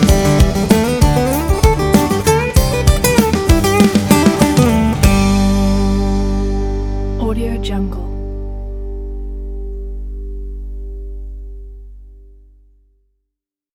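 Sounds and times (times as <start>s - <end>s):
uplifting acoustic pop music: 0.0s - 9.2s.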